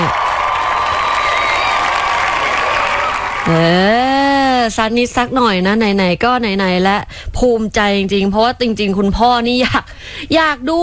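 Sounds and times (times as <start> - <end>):
cheering: 0.0 - 3.7
loud sustained applause from a large crowd: 0.0 - 3.9
speech: 3.5 - 4.0, 4.7 - 10.8.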